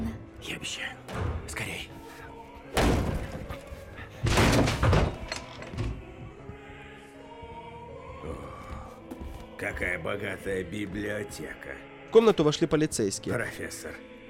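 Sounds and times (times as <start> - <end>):
speech: 0.4 - 2.0, 9.6 - 14.1
door opened and slammed: 2.8 - 3.5, 4.2 - 6.0.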